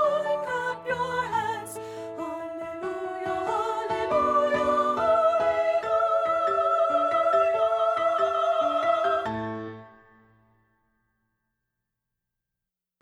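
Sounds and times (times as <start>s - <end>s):
treble soprano voice: 0.0s - 9.4s.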